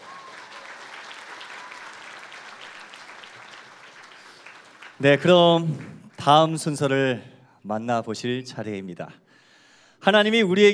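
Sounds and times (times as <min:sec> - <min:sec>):
audience applause: 0:00.0 - 0:06.2
speech: 0:05.0 - 0:09.2, 0:10.0 - 0:10.7.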